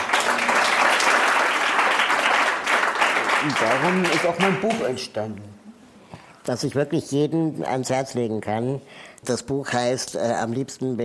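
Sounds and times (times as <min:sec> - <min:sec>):
audience applause: 0:00.0 - 0:05.0
speech: 0:03.4 - 0:05.7, 0:06.4 - 0:11.0.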